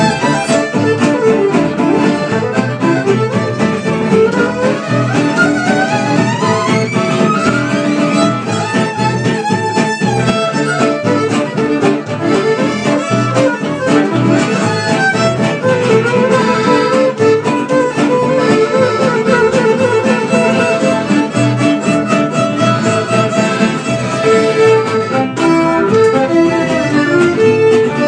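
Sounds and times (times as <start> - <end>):
gypsy jazz finale: 0.0 - 28.0.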